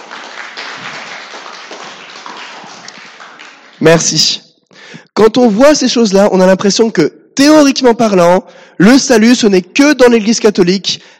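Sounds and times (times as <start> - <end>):
audience applause: 0.0 - 4.2
speech: 3.8 - 4.4, 5.2 - 11.1.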